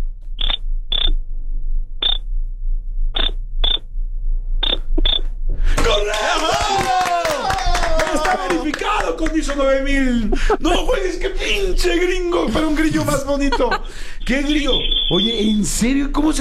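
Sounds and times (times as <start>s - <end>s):
low hum: 0.0s - 16.4s
Morse code beeps: 0.4s - 1.2s, 3.2s - 3.8s, 4.6s - 5.3s, 14.6s - 15.6s
overlapping voices: 5.7s - 10.7s
laughter: 5.8s - 14.8s
speech: 8.7s - 16.4s.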